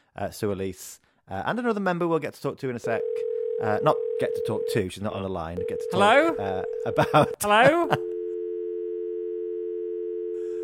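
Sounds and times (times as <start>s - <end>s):
speech: 0.2s - 8.1s
telephone tone after the caller hung up: 3.0s - 4.7s, 8.0s - 10.6s
laughter: 6.8s - 8.0s.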